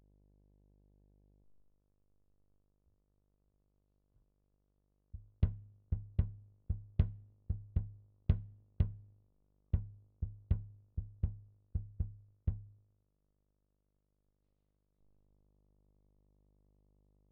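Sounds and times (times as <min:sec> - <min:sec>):
kick drum: 0:05.2 - 0:12.8.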